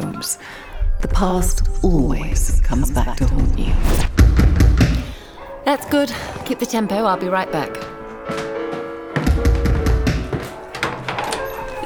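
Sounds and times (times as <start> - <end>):
speech: 0.2 - 4.5, 5.7 - 7.9
knocking on a door: 4.2 - 5.1, 9.2 - 11.1.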